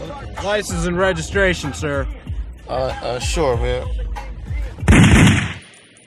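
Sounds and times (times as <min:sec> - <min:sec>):
speech: 0:00.4 - 0:04.0
gunshot during a police traffic stop in Sacramento: 0:04.9 - 0:05.7.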